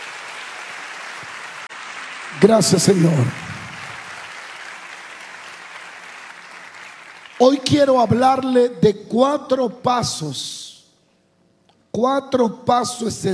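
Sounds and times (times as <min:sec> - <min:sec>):
audience applause: 0:00.0 - 0:07.7
speech: 0:02.3 - 0:03.5, 0:07.4 - 0:10.8, 0:12.0 - 0:13.3.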